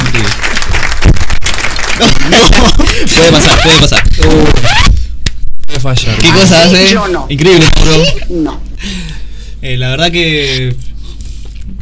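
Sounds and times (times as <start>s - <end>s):
applause in a radio studio: 0.0s - 4.2s
speech: 0.2s - 0.4s, 2.0s - 4.9s, 5.8s - 10.9s
laughter: 1.9s - 4.0s, 7.8s - 8.4s.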